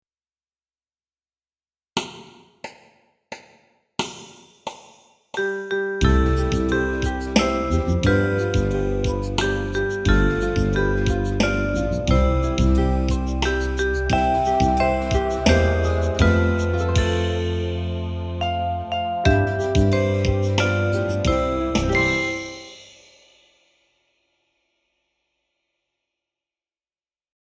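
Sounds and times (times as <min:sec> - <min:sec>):
slow piano melody: 0:06.0 - 0:22.7.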